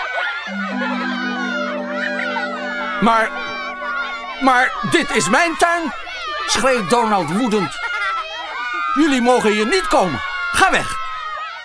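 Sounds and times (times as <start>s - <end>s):
low hum: 0.5s - 6.4s
crowd of children shouting and laughing: 0.5s - 11.6s
speech: 3.0s - 3.5s, 4.4s - 7.8s, 9.0s - 11.0s.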